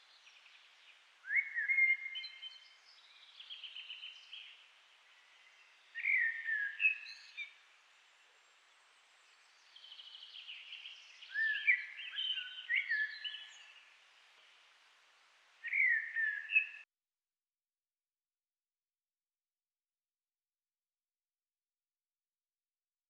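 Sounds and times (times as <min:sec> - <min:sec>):
common blackbird singing: 0:00.0 - 0:07.6, 0:09.4 - 0:13.9, 0:15.6 - 0:16.8.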